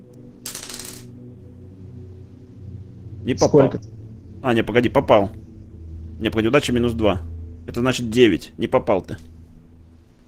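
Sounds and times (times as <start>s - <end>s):
dice being rolled: 0.4s - 1.1s
speech: 3.2s - 5.4s, 6.2s - 9.3s.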